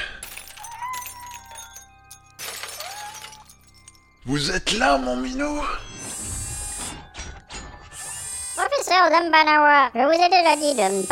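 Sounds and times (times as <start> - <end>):
streetlamp glass shattering: 0.2 - 4.2
speech: 4.2 - 6.4, 8.9 - 11.0.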